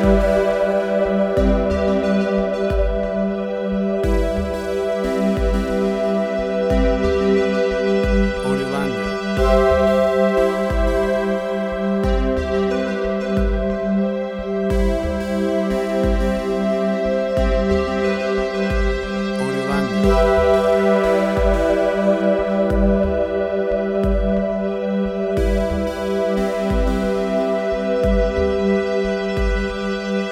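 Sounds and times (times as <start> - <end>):
beautiful ambience: 0.0 - 30.3.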